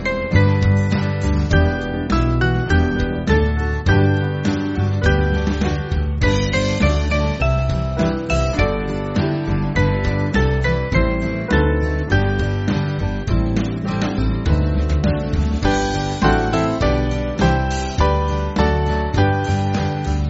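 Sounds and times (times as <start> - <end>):
small band playing church backing music: 0.0 - 20.2.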